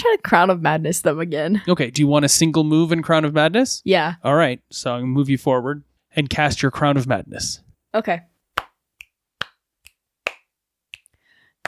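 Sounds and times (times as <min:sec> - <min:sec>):
speech: 0:00.1 - 0:08.3
fingers snapping: 0:08.6 - 0:11.6
hands clapping: 0:08.6 - 0:11.6.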